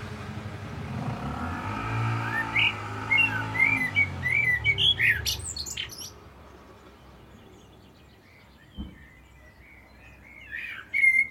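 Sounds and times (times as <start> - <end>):
Common blackbird chinking calls: 1.6 - 11.3
brief low thud: 8.8 - 9.1.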